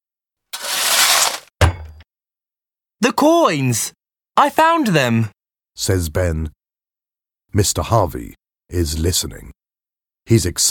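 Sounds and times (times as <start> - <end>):
spade hitting something hard: 0.6 - 2.0
speech: 3.1 - 6.6, 7.5 - 9.6, 10.3 - 10.6.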